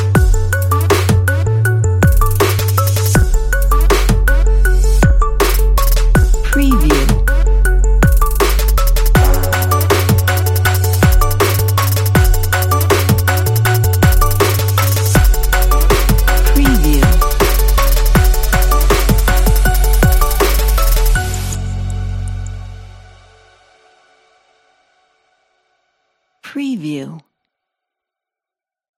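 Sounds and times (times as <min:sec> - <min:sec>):
heavy trap music: 0:00.0 - 0:21.8.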